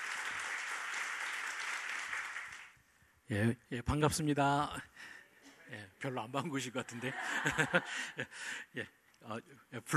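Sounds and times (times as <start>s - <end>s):
welcoming applause from audience: 0.0s - 2.8s
speech: 3.3s - 9.9s
laughter: 6.8s - 8.5s.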